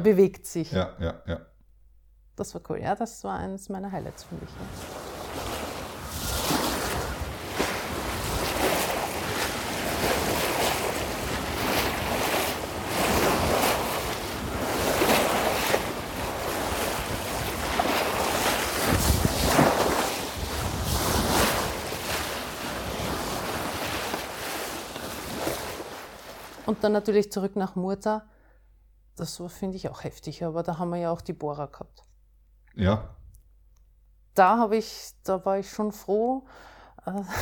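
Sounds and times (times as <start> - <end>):
speech: 0.0 - 1.5, 2.4 - 5.6, 26.7 - 28.4, 29.2 - 32.1, 32.8 - 33.2, 34.4 - 37.4
waves while sailing: 4.0 - 27.1
wind while sailing: 4.3 - 26.8.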